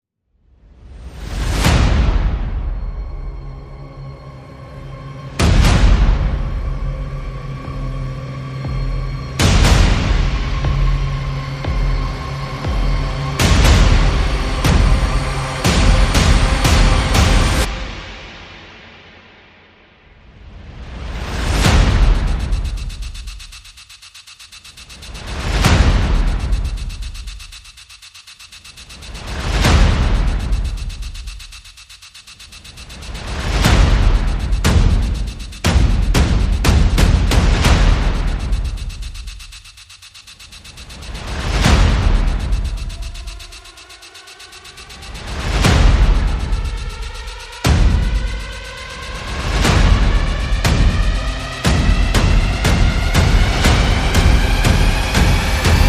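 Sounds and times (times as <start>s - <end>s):
percussion: 1.0s - 19.3s, 20.2s - 55.8s
sound effects: 20.8s - 55.8s.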